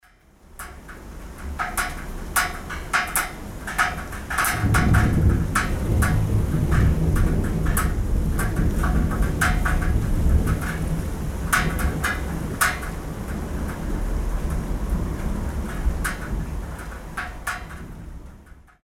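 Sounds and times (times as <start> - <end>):
rain on a metal roof: 0.0 - 18.8
thunder: 4.4 - 16.9.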